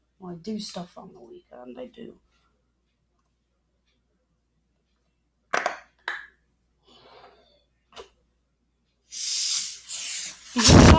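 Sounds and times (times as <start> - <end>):
speech: 0.3 - 2.3
balloon: 9.1 - 10.9.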